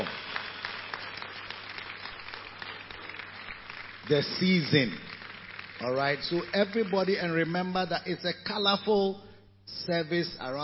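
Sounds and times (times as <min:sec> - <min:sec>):
crowd clapping: 0:00.0 - 0:07.8
speech: 0:04.1 - 0:05.1, 0:05.8 - 0:10.6.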